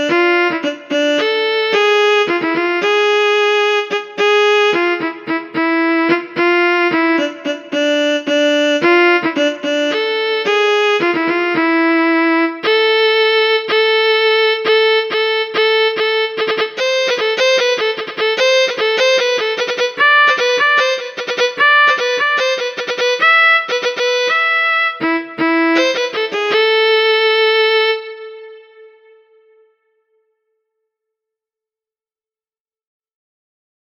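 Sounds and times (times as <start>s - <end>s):
harmonic minor scale melody: 0.0s - 30.2s.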